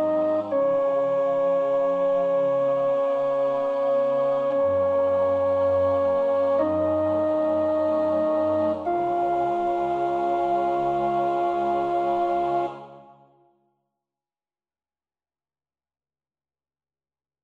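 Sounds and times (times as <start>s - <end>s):
soprano singing a prayer practice part: 0.0s - 13.3s.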